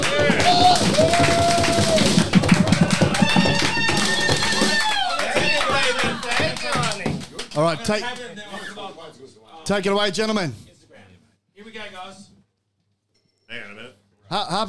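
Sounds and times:
audience applause: 0.0 - 8.3
speech: 7.6 - 8.6, 9.7 - 10.7, 14.3 - 14.6.

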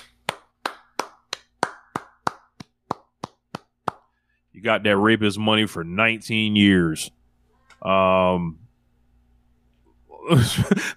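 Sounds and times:
person clapping: 0.0 - 4.1
speech: 4.6 - 7.2, 7.8 - 8.6, 10.2 - 10.9
laughter: 10.3 - 10.9.

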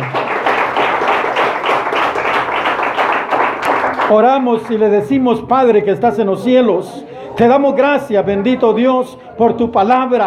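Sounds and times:
audience clapping: 0.0 - 5.1
speech: 4.1 - 10.2.

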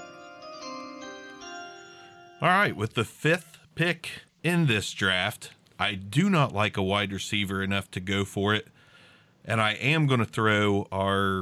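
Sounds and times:
chime sound effect: 0.0 - 2.9
speech: 2.4 - 8.7, 9.4 - 11.3.

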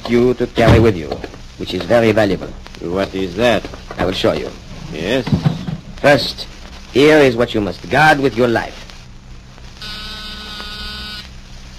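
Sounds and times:
speech: 0.1 - 8.8
ordinary door buzzer from small buzzer and battery set: 9.8 - 11.3.

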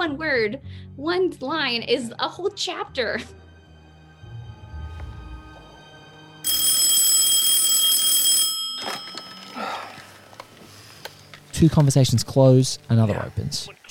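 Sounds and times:
speech: 0.0 - 3.4, 11.6 - 13.8
phone alarm ringing: 6.4 - 9.6.

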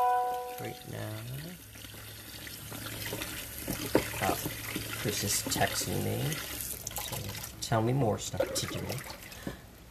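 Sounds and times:
washing dishes: 0.0 - 9.7
speech: 0.6 - 1.9, 2.7 - 6.6, 7.2 - 9.6.

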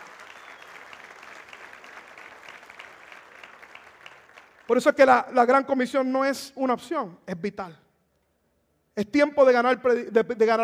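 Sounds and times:
audience applause: 0.0 - 4.7
speech: 4.7 - 7.8, 9.0 - 10.6.

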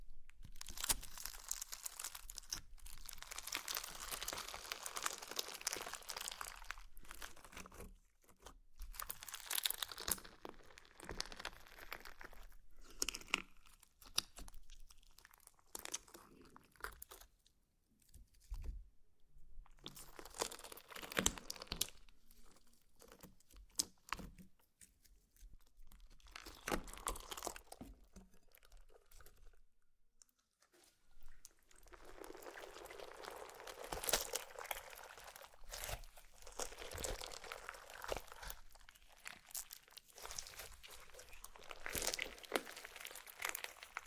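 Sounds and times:
slime squishing and crackling: 0.0 - 17.3, 19.6 - 29.7, 30.7 - 44.0.

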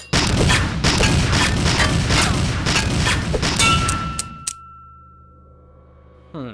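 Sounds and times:
gunfire bursts: 0.0 - 4.4
faint metallic ring: 3.7 - 6.4.

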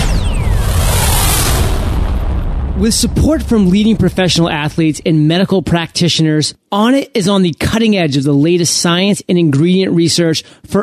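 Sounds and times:
rocket ignition boom sound effect: 0.0 - 5.2
speech: 2.8 - 10.8.

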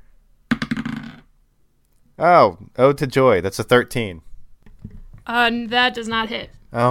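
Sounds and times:
dice clattering across a hard surface: 0.5 - 1.3
speech: 2.2 - 4.3, 5.3 - 6.8.

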